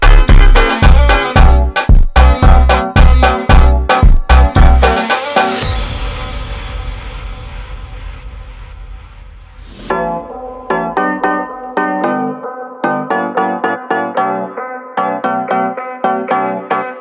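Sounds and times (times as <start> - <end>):
super slowed funk music: 0.0 - 5.6, 9.8 - 16.9.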